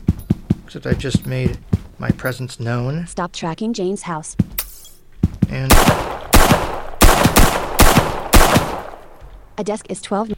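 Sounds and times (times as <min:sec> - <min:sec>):
speech: 0:00.7 - 0:04.6, 0:05.5 - 0:06.2, 0:09.6 - 0:10.3
gunshots fired in a video game: 0:05.6 - 0:09.2.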